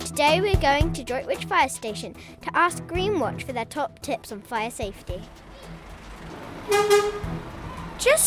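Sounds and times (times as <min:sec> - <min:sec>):
speech: 0:00.2 - 0:05.8, 0:06.7 - 0:08.2
fire truck horn honking driving into Droitwich Fire Station: 0:06.5 - 0:07.8.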